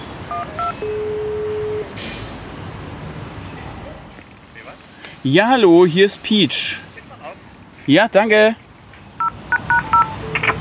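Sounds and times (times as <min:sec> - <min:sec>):
doorbell intercom ringing at gate: 0:00.3 - 0:01.9
speech: 0:05.2 - 0:06.8, 0:07.9 - 0:08.6.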